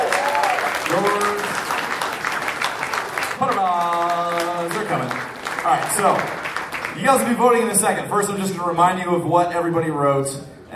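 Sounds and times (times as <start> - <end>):
audience applause: 0.0 - 7.4
speech: 0.9 - 1.3, 5.7 - 6.4, 7.0 - 10.7.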